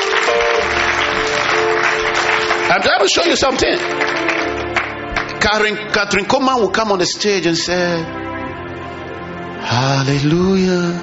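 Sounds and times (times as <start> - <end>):
audience clapping: 0.0 - 5.9
speech: 2.8 - 4.5, 5.4 - 8.2, 9.7 - 11.0.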